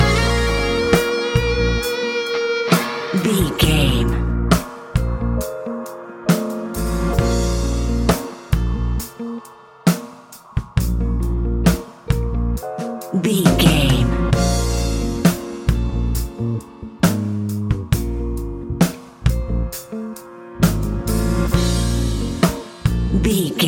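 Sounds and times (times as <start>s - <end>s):
classic hip hop and rap music: 0.0s - 18.4s, 19.3s - 23.6s.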